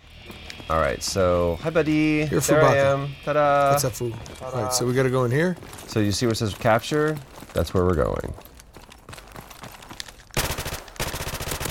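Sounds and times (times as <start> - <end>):
speech: 0.7 - 8.5
scattered video game shots and clicks: 10.3 - 11.6
rapid automatic gunfire from a shooting video game: 10.4 - 11.6.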